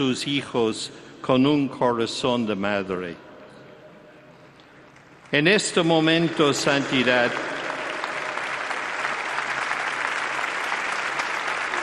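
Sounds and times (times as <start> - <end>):
speech: 0.0 - 3.2, 5.3 - 7.6
crowd applause: 5.8 - 11.8.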